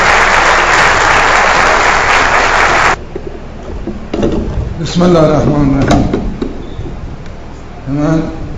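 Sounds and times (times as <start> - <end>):
crowd applauding: 0.0 - 3.0
speech: 4.8 - 6.2, 7.9 - 8.4.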